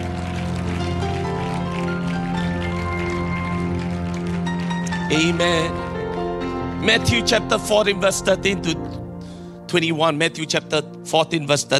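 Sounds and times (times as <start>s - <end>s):
audience clapping hands: 0.0s - 7.5s
speech: 5.1s - 5.8s, 6.8s - 9.0s, 9.7s - 11.7s.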